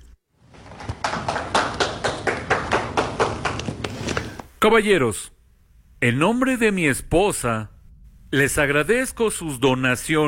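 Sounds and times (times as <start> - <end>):
small group applauding: 0.4 - 4.4
speech: 4.6 - 5.4, 6.0 - 7.7, 8.3 - 10.2.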